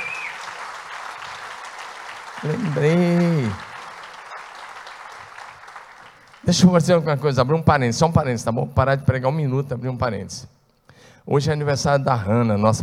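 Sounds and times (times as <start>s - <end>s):
audience applauding: 0.0s - 6.8s
speech: 2.4s - 3.7s, 6.5s - 10.6s, 11.2s - 12.8s.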